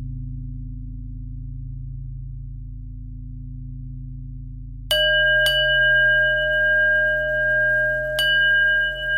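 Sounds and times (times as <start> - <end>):
bells: 4.9 - 9.1.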